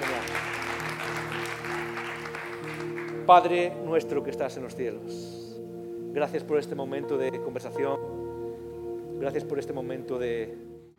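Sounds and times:
crowd applauding: 0:00.0 - 0:03.6
speech: 0:03.3 - 0:05.4, 0:06.1 - 0:08.2, 0:09.2 - 0:10.9.

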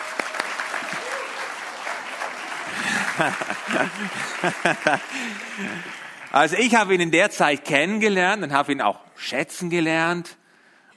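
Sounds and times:
audience applause: 0:00.0 - 0:07.0
laughter: 0:02.4 - 0:06.2
speech: 0:03.2 - 0:10.4.

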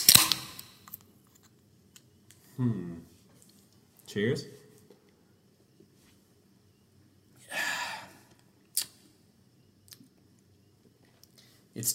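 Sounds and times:
beer can being cracked open: 0:00.0 - 0:01.0
speech: 0:02.6 - 0:03.1, 0:04.1 - 0:04.6.

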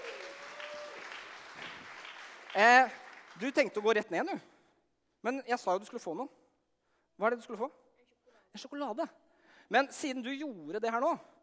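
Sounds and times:
applause: 0:00.0 - 0:04.0
speech: 0:02.6 - 0:04.5, 0:05.2 - 0:06.4, 0:07.2 - 0:07.8, 0:08.5 - 0:11.3.

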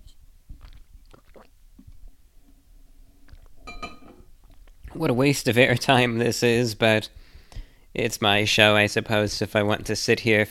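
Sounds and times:
sipping and gulping a drink: 0:00.0 - 0:02.2, 0:03.1 - 0:05.0
glass clinking against something hard: 0:03.6 - 0:04.3
speech: 0:05.0 - 0:07.2, 0:08.0 - 0:10.5.

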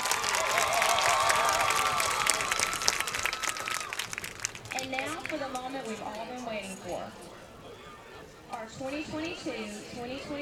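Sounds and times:
crowd cheering with high-pitched whoops and shouts: 0:00.0 - 0:04.8
crowd applause: 0:00.0 - 0:06.0
speech: 0:08.8 - 0:10.4.

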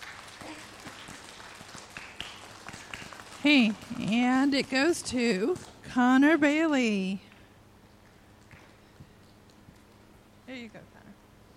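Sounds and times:
standing round of applause: 0:00.0 - 0:06.1
speech: 0:03.4 - 0:07.2.

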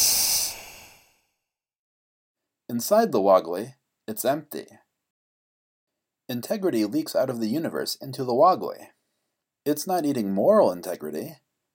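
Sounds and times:
person imitating a creature's hiss: 0:00.0 - 0:01.1
speech: 0:02.7 - 0:04.8, 0:06.3 - 0:09.0, 0:09.6 - 0:11.4.

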